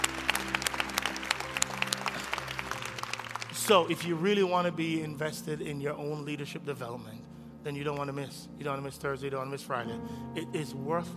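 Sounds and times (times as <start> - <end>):
audience applause: 0.0 - 4.7
speech: 3.7 - 11.1.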